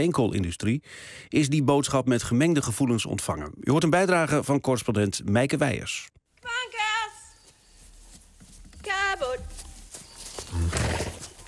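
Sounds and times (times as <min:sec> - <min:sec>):
speech: 0:00.0 - 0:06.8
woman calling horses in a pasture: 0:06.4 - 0:07.9, 0:08.6 - 0:11.4.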